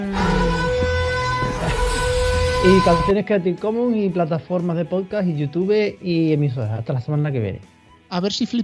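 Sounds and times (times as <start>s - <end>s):
horn sound effect blaring: 0.1s - 3.1s
speech: 2.6s - 8.6s.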